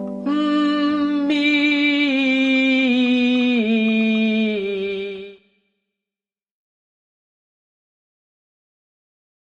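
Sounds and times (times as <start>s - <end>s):
person humming a descending legato line: 0.2s - 5.4s.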